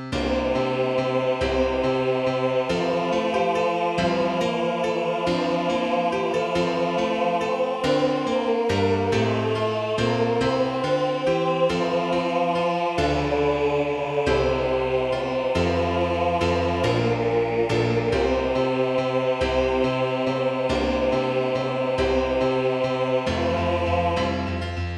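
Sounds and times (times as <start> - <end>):
liturgical chant: 0.2 - 24.8.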